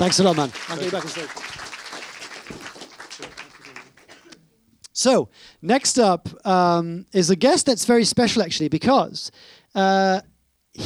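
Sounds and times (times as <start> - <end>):
speech: 0.0 - 1.6, 5.0 - 10.8
crowd applauding: 0.0 - 4.4.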